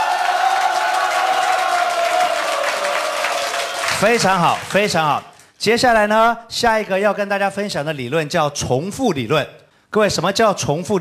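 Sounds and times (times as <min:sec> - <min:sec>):
faint cheers: 0:00.0 - 0:04.6
audience applause: 0:00.0 - 0:05.1
speech: 0:04.0 - 0:10.9.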